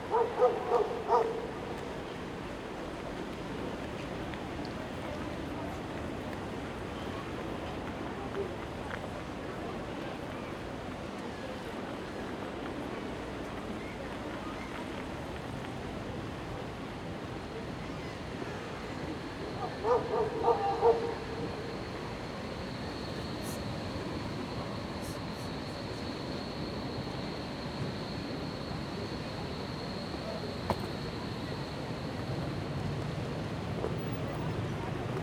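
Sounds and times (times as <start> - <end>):
city ambience at Alexanderplatz in Berlin: 0.0 - 35.2.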